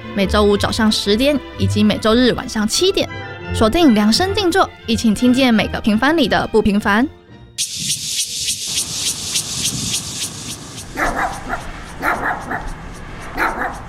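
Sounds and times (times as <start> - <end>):
speech: 0.2 - 8.3
dog barking and yipping in the middle of the night: 10.8 - 13.8.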